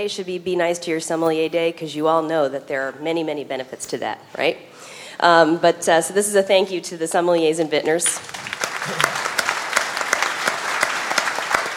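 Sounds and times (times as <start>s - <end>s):
speech: 0.0s - 9.3s
audience applause: 8.0s - 11.7s.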